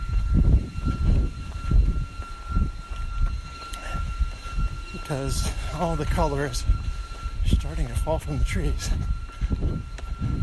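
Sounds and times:
leaf blowers running outdoors: 1.1 - 10.1
speech: 5.1 - 9.6.

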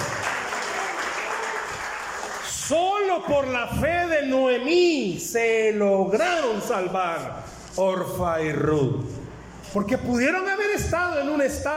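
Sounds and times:
audience applauding: 0.0 - 2.8
speech: 2.7 - 11.7.

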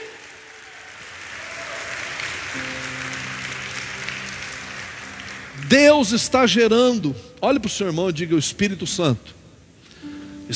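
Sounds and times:
audience applauding: 0.0 - 7.0
speech: 2.6 - 2.8, 5.7 - 9.4.

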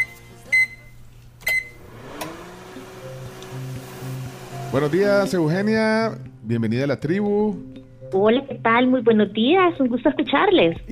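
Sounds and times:
microwave oven beeps: 0.0 - 3.3
microwave oven humming drone with faint whir: 0.0 - 6.1
microwave oven click: 1.4 - 2.5, 3.3 - 3.6
speech: 4.7 - 10.8.

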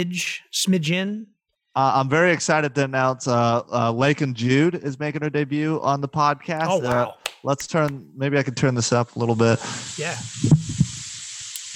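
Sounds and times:
speech: 0.0 - 10.8
food sizzling in a cooking pan: 9.2 - 11.7.

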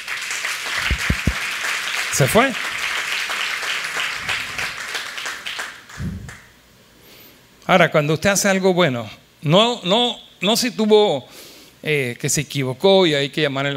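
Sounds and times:
audience applause: 0.0 - 6.4
speech: 2.2 - 2.7, 7.7 - 13.7.

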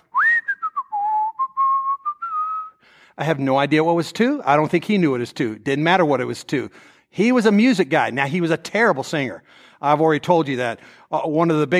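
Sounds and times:
man whistling a tune: 0.0 - 2.9
speech: 3.2 - 11.7.

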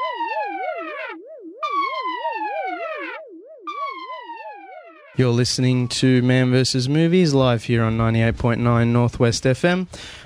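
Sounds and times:
alarm siren sound effect: 0.0 - 6.5
speech: 5.2 - 10.2.

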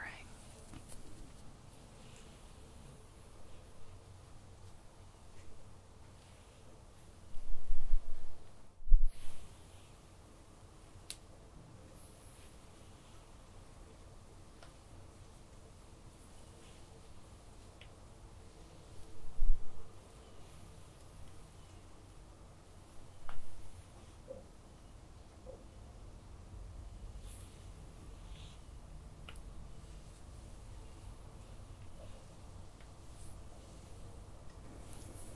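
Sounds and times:
soft hair play and light touching: 0.0 - 25.4, 26.7 - 35.3
steady low hiss: 0.0 - 35.3.

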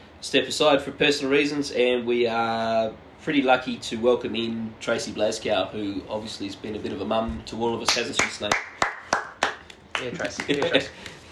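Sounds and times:
speech: 0.2 - 8.7, 10.0 - 11.3
round of applause: 7.9 - 11.3.

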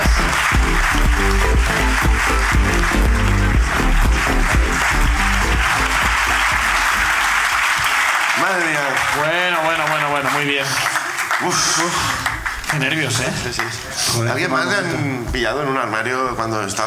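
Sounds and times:
musical backing: 0.0 - 8.2
audience applause: 0.0 - 14.0
speech: 10.4 - 16.8.

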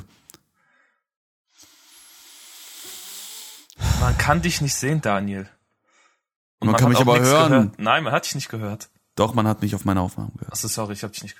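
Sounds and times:
voice imitating a group's sharp intake of breath: 1.6 - 4.8
speech: 4.0 - 5.6, 6.6 - 11.3.

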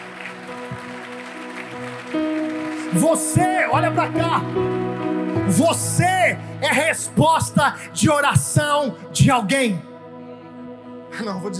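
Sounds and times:
audience applauding: 0.0 - 6.4
speech: 2.9 - 4.9, 5.5 - 9.9, 11.2 - 11.5.

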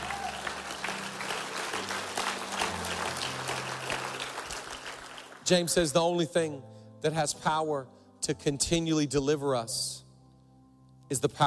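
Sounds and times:
audience applause: 0.0 - 5.4
speech: 5.5 - 10.0, 11.1 - 11.4.

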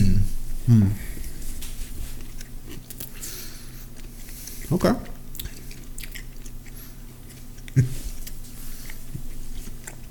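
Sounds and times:
low noise: 0.0 - 10.0
speech: 0.7 - 1.1, 4.7 - 5.1
soft crunching bite into a Burger King chicken burger: 2.2 - 10.0.

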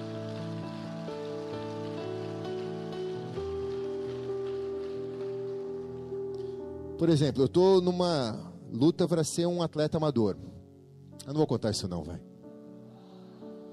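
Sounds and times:
audience applauding: 0.0 - 6.5
speech: 7.0 - 10.5, 11.2 - 12.3.

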